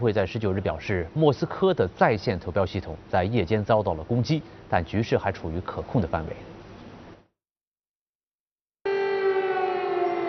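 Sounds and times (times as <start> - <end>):
speech: 0.0 - 6.5
air raid siren: 8.8 - 10.2.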